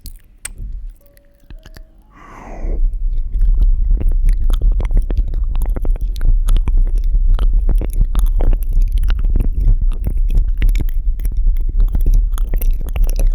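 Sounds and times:
brief rising squeak-like sweep: 0:01.9 - 0:03.0
close wet chewing sounds at the ear: 0:04.3 - 0:13.3.

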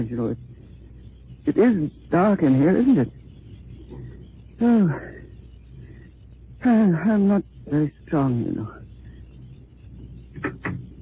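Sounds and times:
speech: 0:00.0 - 0:00.6, 0:01.4 - 0:03.2, 0:04.6 - 0:05.2, 0:06.6 - 0:08.8
low steady rumble: 0:00.0 - 0:11.0.

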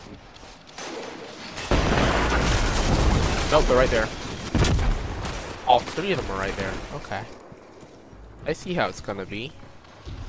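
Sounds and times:
grenade explosion in Destiny 2: 0:01.6 - 0:07.0
speech: 0:03.5 - 0:04.2, 0:05.7 - 0:07.4, 0:08.4 - 0:09.6.

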